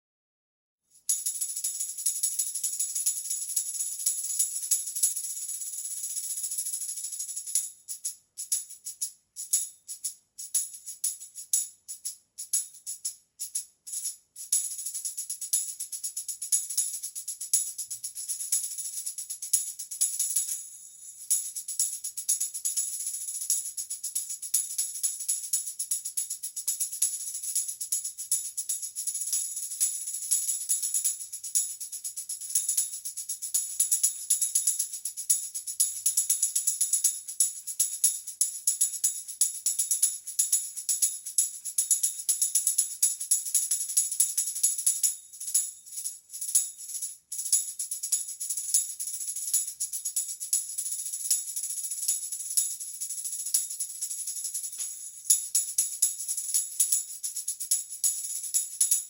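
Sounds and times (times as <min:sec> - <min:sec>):
tambourine: 0:00.8 - 0:59.0.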